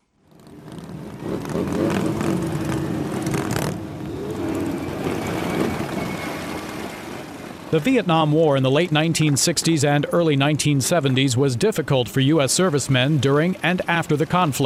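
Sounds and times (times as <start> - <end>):
motorcycles rumbling through the streets of downtown Washington: 0.2 - 14.6
speech: 7.7 - 14.6.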